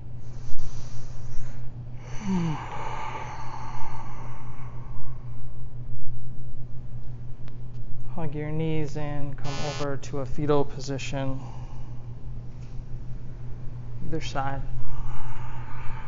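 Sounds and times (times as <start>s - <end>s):
low steady hum: 0.0s - 16.0s
slow deep breathing in and out during a guided exercise: 0.2s - 5.8s, 11.4s - 12.4s, 14.7s - 16.0s
speech: 8.3s - 11.6s, 14.1s - 14.8s.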